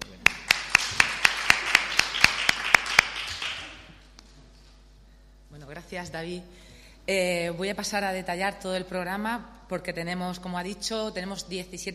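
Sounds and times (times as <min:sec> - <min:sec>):
audience applause: 0:00.1 - 0:03.9
speech: 0:05.9 - 0:11.9.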